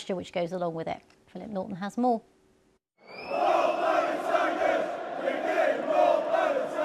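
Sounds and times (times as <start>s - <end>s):
speech: 0.0s - 2.4s
sports supporters chanting: 3.0s - 6.8s.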